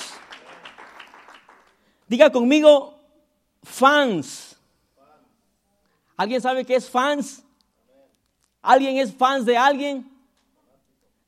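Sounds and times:
audience applause: 0.0s - 1.8s
speech: 2.1s - 3.0s, 3.7s - 4.5s, 6.2s - 7.5s, 8.6s - 10.1s.

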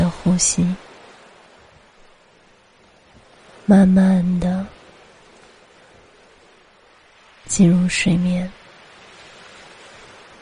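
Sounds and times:
ocean waves: 0.0s - 10.4s
speech: 0.4s - 0.8s, 3.7s - 4.8s, 7.5s - 8.6s.

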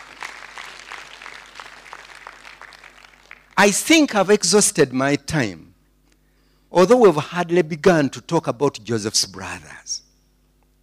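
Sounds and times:
audience clapping: 0.0s - 3.8s
speech: 3.6s - 5.7s, 6.7s - 10.1s.

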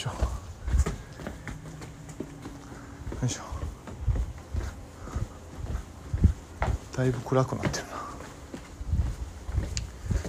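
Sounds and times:
footsteps going down a stairwell from the fifth floor: 0.0s - 10.2s
speech: 3.2s - 3.6s, 7.0s - 7.9s.

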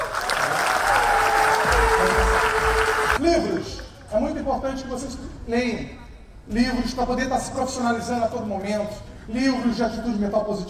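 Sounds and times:
audience applause: 0.0s - 3.6s
speech: 3.3s - 10.6s.

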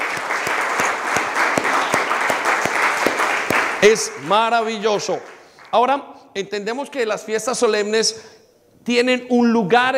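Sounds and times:
audience applause: 0.0s - 4.3s
speech: 3.8s - 9.9s.

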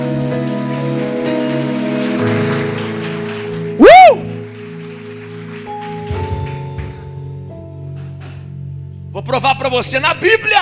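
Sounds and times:
audience applause: 0.0s - 6.8s
speech: 9.3s - 10.6s.

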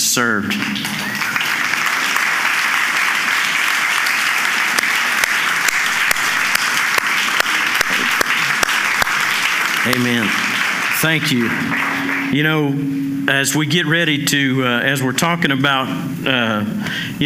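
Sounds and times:
crowd applause: 0.0s - 12.4s
speech: 0.2s - 1.1s, 9.8s - 10.4s, 11.0s - 17.2s.

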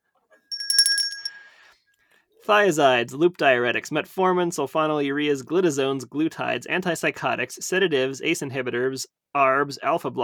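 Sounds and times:
bell ringing: 0.5s - 1.5s
speech: 2.4s - 10.2s.

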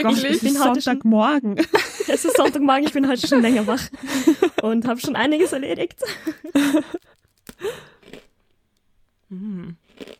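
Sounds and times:
speech: 0.0s - 7.9s, 9.3s - 10.1s
biting into a crunchy cookie: 6.2s - 10.1s.

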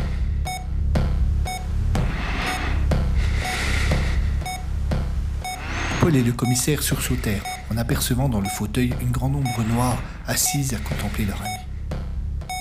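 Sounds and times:
continuous low machine hum: 0.1s - 12.6s
hospital monitoring equipment beeping: 0.4s - 0.7s, 1.4s - 11.8s, 12.4s - 12.6s
soft airy whoosh: 2.0s - 3.8s, 5.5s - 7.7s
speech: 6.1s - 11.6s.

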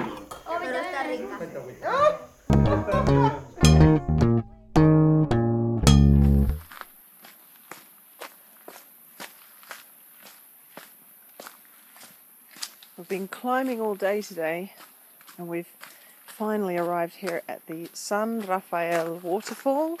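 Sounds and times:
laughter: 0.0s - 4.2s
speech: 1.1s - 3.5s, 13.4s - 19.9s
bright melodic tones: 2.5s - 6.6s
footsteps walking down a path: 6.6s - 19.9s.

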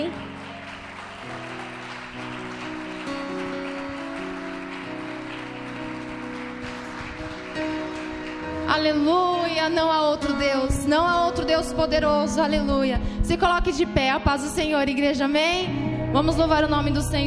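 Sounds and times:
audience applauding: 0.0s - 9.4s
speech: 8.7s - 17.2s.

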